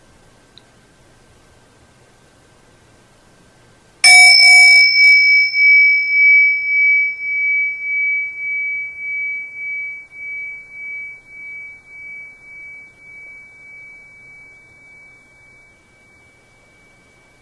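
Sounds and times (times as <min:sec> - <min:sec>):
gong: 0:04.0 - 0:17.4.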